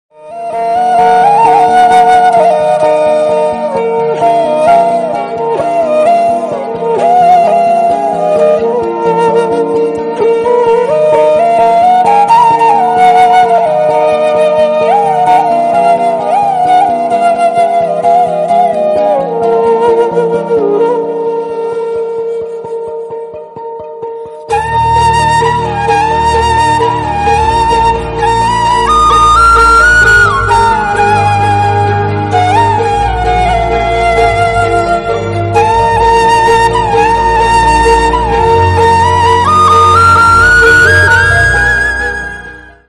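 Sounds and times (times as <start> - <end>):
emotional theme background music: 0.3 - 42.8.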